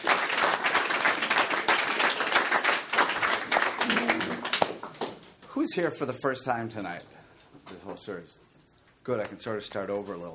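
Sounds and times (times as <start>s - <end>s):
audience applause welcoming a speaker at an Alcoholics Anonymous meeting: 0.0s - 5.2s
speech: 5.7s - 10.3s.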